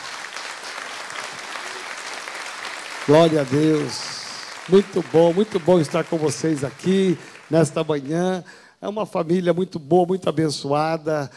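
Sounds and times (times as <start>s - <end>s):
audience applauding: 0.0s - 8.6s
speech: 3.1s - 11.3s.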